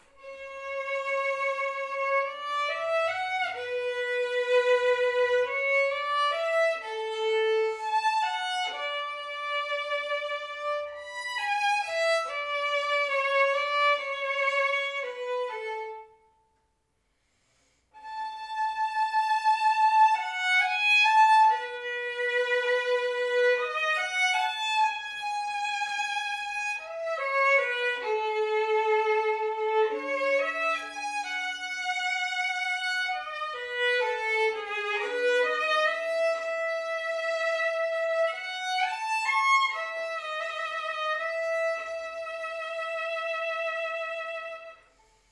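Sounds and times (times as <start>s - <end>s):
solo violin arioso: 0.0s - 16.6s, 18.0s - 45.3s.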